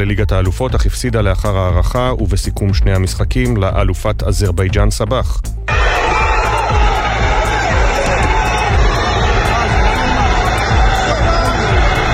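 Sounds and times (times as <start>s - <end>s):
speech: 0.0s - 5.6s
large stadium crowd of disappointed football fans roaring: 5.7s - 12.1s.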